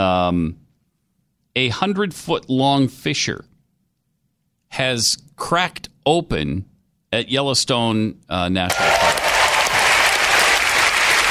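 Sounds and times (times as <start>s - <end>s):
speech: 0.0s - 0.6s, 1.6s - 3.5s, 4.7s - 9.2s
audience applause and cheering: 8.7s - 11.3s.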